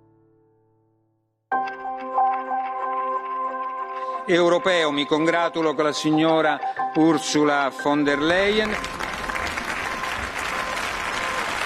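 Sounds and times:
parliament applause: 1.7s - 5.7s, 7.9s - 11.6s
speech: 4.3s - 9.0s.

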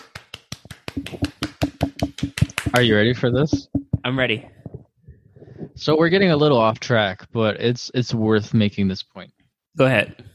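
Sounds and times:
clapping: 0.0s - 3.0s
speech: 2.8s - 4.6s, 5.8s - 9.1s, 9.8s - 10.2s.

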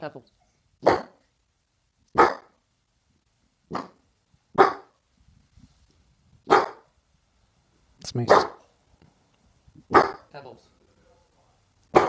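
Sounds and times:
speech: 0.0s - 1.1s, 8.2s - 8.5s
dog barking at someone at the door: 0.8s - 1.2s, 2.2s - 2.6s, 3.7s - 4.0s, 4.6s - 4.9s, 6.5s - 6.9s, 8.2s - 8.7s, 9.9s - 10.3s.

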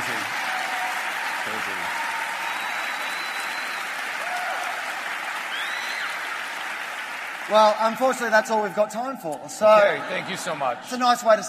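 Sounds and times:
big round of applause: 0.0s - 9.0s
speech: 7.5s - 11.4s
laughter: 9.6s - 11.3s.

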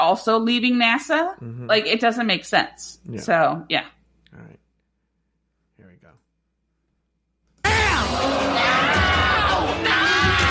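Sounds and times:
speech: 0.1s - 4.6s
crowd-like shouting din: 7.7s - 10.4s
several voices screaming: 7.7s - 10.4s.

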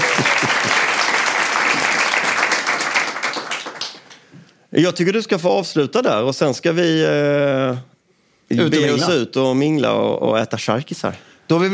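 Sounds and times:
audience applause: 0.0s - 4.2s
speech: 4.7s - 7.9s, 8.5s - 11.7s.

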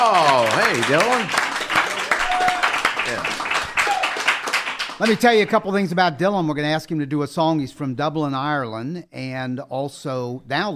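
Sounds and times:
speech: 0.0s - 1.4s, 5.0s - 10.7s
audience applause: 0.0s - 5.5s
scattered voices and whoops: 1.9s - 2.9s, 3.6s - 4.3s.

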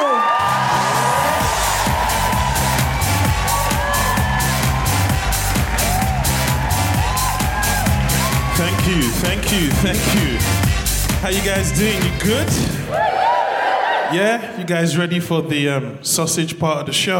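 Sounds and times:
audience cheering at a comedy benefit show at the Hackney Empire: 0.0s - 10.4s, 11.3s - 14.4s
speech: 9.6s - 13.3s, 14.1s - 17.1s.

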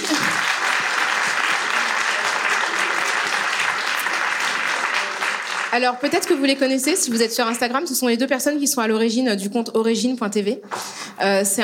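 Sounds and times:
audience applause: 0.0s - 7.2s
speech: 5.7s - 11.6s.

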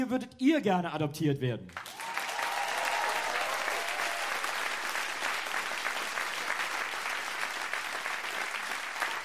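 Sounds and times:
speech: 0.0s - 2.0s
audience applause: 1.8s - 9.2s.

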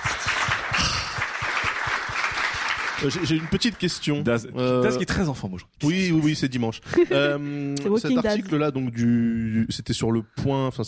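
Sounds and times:
studio audience applause: 0.0s - 4.4s
speech: 3.0s - 10.8s.

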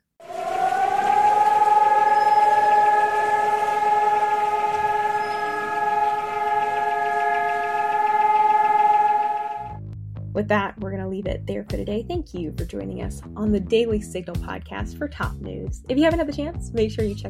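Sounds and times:
remembrance siren wailing in Jerusalem: 0.2s - 9.8s
speech: 10.5s - 17.2s.

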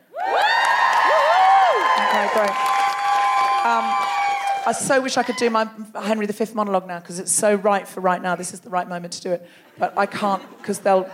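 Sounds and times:
audience cheering: 0.0s - 5.5s
speech: 4.7s - 11.1s.

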